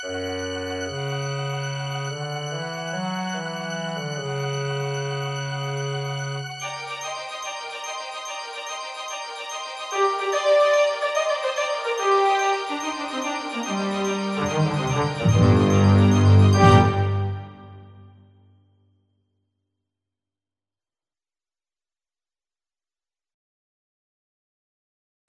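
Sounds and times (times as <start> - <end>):
orchestra: 0.0 - 18.2.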